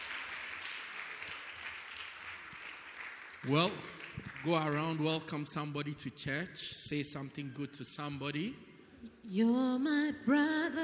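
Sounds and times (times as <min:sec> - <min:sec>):
church congregation applauding: 0:00.0 - 0:06.4
speech: 0:03.4 - 0:10.8.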